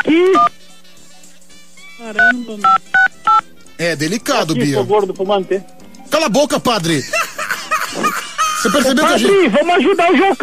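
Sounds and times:
speech: 2.1 - 3.0, 3.8 - 7.2, 7.9 - 10.4
telephone keypad dialing tones: 2.2 - 3.4
laughter: 7.0 - 10.4.

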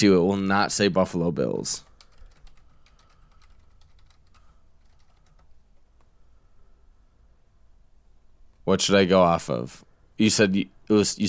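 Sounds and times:
speech: 0.0 - 1.9, 8.7 - 11.2
soft hiss: 1.6 - 11.2
typing a search on a computer keyboard: 1.8 - 5.8.

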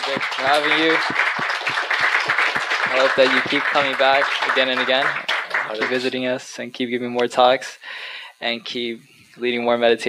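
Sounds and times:
audience applause: 0.0 - 6.1
speech: 0.1 - 2.0, 2.9 - 10.0.

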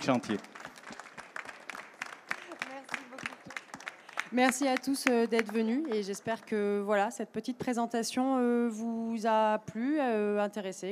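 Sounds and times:
speech: 0.0 - 0.6, 4.3 - 10.9
audience applauding: 0.0 - 6.7.

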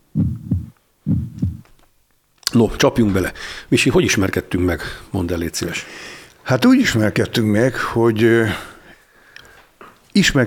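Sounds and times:
heartbeat on a cardiac monitor: 0.0 - 1.7
speech: 2.5 - 8.7, 10.2 - 10.4.

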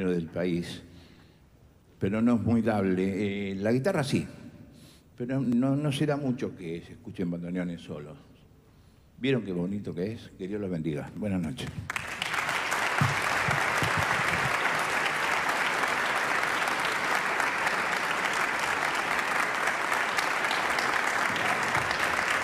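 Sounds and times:
speech: 0.0 - 0.9, 2.0 - 4.4, 5.2 - 8.3, 9.2 - 12.0
concert audience applause: 11.9 - 22.4.

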